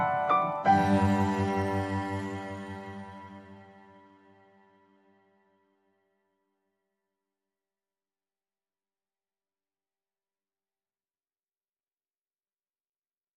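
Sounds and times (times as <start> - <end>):
music without lead cello: 0.0 - 4.6.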